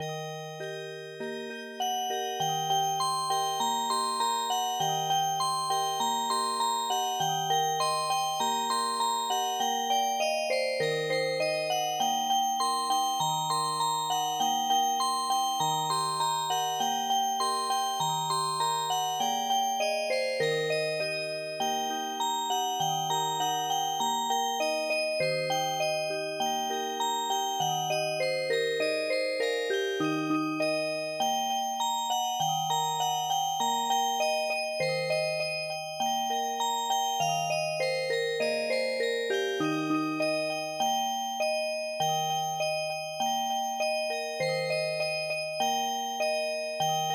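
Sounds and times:
music box: 0.0 - 47.1.

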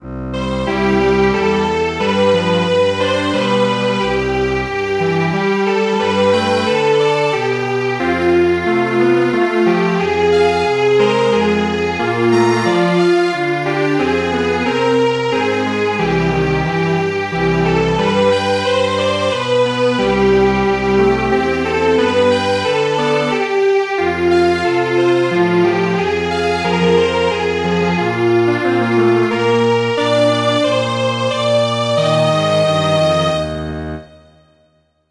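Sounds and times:
string quartet playing traditional music: 1.0 - 33.6.

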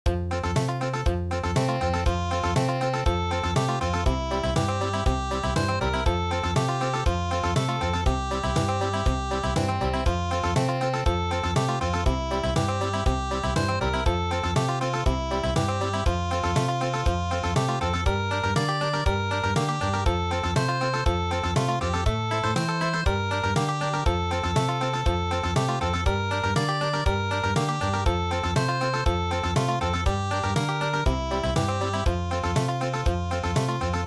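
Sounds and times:
country midi music: 0.1 - 34.0.

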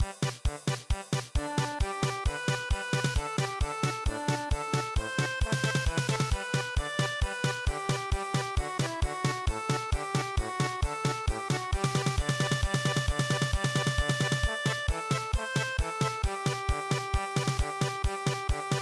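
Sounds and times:
German polka music: 0.0 - 18.7.

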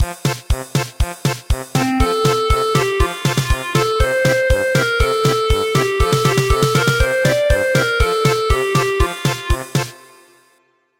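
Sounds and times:
German polka music: 0.1 - 10.2.

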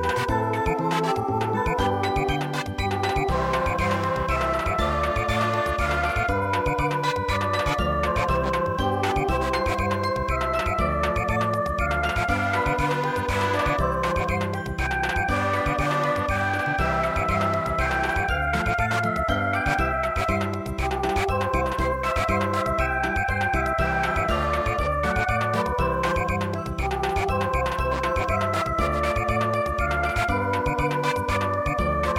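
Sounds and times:
German samba dance song: 0.0 - 32.1.

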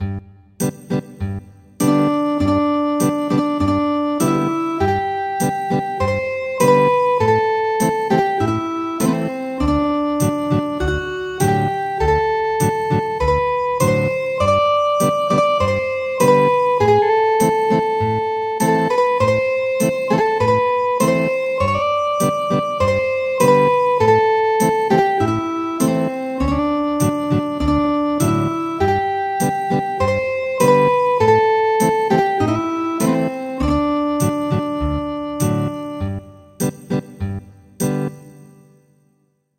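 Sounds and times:
traditional ethnic guitar music: 1.8 - 37.2.

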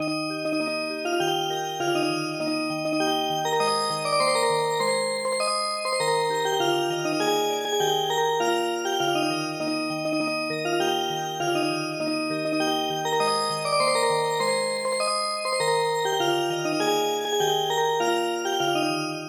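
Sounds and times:
music box: 0.0 - 19.2.

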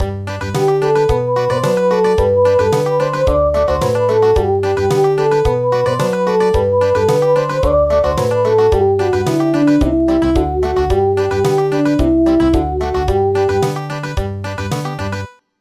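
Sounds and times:
country music: 0.0 - 15.3.

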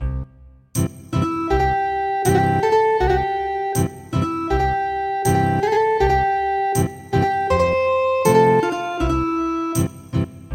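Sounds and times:
ethnic guitar music: 0.8 - 10.3.

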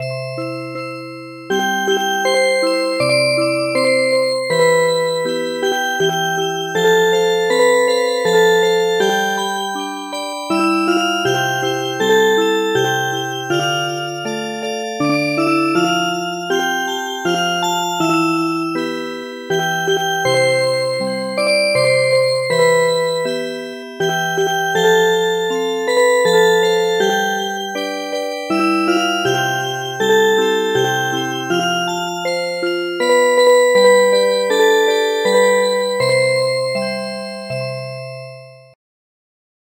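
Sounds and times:
MIDI music box melody: 0.0 - 38.6.

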